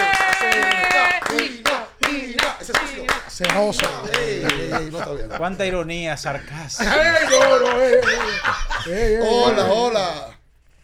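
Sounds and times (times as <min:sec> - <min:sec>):
applause: 0:00.0 - 0:04.3
speech: 0:03.4 - 0:10.4
laughter: 0:03.7 - 0:05.7, 0:06.5 - 0:09.9.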